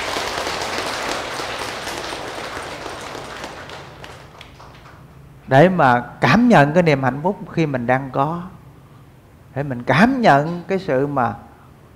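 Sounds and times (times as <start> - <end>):
big round of applause: 0.0 - 5.1
speech: 5.5 - 8.6, 9.6 - 11.5.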